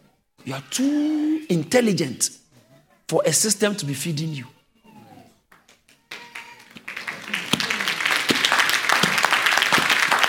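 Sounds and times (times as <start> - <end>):
speech: 0.4 - 2.4, 3.1 - 4.6
audience clapping: 5.5 - 10.2.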